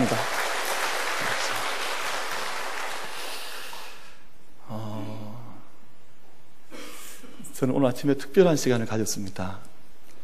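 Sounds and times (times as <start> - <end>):
crowd clapping: 0.0 - 4.1
speech: 7.6 - 9.7.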